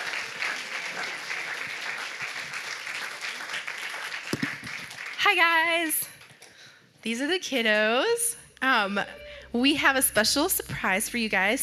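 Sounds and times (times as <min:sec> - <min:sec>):
audience applauding: 0:00.0 - 0:06.4
speech: 0:05.3 - 0:06.1, 0:07.0 - 0:11.6.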